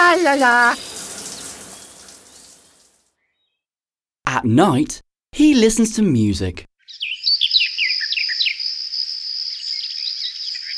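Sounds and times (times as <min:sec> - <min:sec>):
shower water running: 0:00.0 - 0:03.0
speech: 0:00.1 - 0:00.9, 0:04.4 - 0:06.7.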